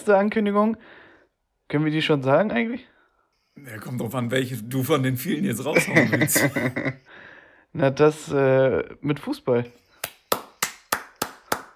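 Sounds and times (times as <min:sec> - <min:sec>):
speech: 0:00.0 - 0:01.0, 0:01.7 - 0:02.9, 0:03.6 - 0:09.8
laughter: 0:05.7 - 0:07.1
clapping: 0:10.0 - 0:11.7.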